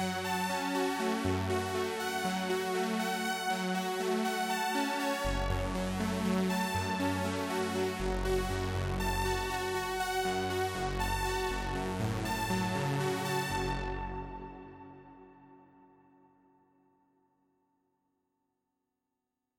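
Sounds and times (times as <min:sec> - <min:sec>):
Roland Jupiter 8 synthesizer arpeggio: 0:00.2 - 0:15.1.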